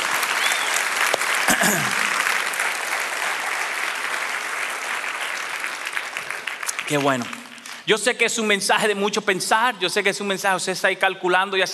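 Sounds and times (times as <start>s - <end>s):
audience applauding: 0.0s - 7.9s
speech: 1.6s - 2.0s, 6.9s - 11.7s.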